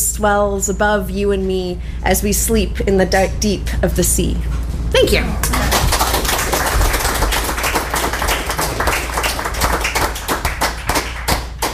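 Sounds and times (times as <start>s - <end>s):
speech: 0.2s - 5.7s
audience applause: 5.4s - 11.7s.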